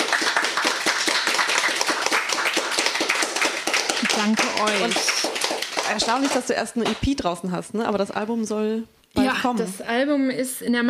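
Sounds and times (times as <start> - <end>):
audience applause: 0.0 - 7.0
speech: 4.2 - 5.2, 5.9 - 10.8.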